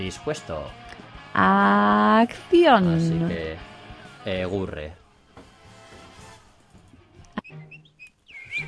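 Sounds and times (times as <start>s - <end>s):
speech: 0.0s - 5.0s
nightingale chirping and trilling, played recording: 7.2s - 8.6s.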